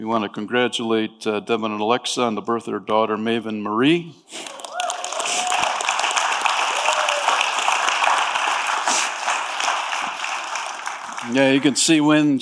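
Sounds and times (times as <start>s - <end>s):
speech: 0.0s - 4.7s, 11.3s - 12.4s
crowd clapping: 4.3s - 12.4s.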